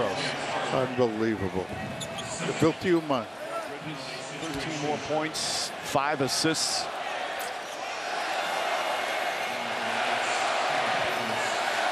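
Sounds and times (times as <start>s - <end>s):
speech: 0.7s - 7.0s
basketball fans chanting in an arena: 6.9s - 11.9s.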